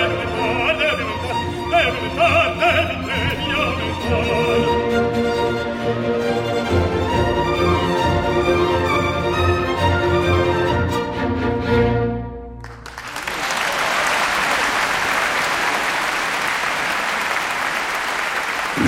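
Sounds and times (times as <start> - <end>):
sung orchestral piece: 0.0 - 11.2
theatre audience applause: 12.6 - 18.8.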